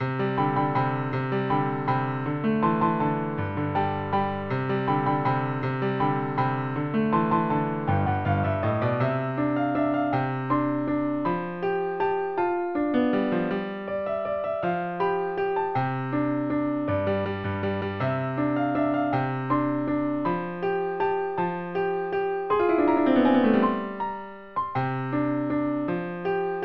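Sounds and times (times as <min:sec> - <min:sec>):
piano: 0:00.0 - 0:26.6.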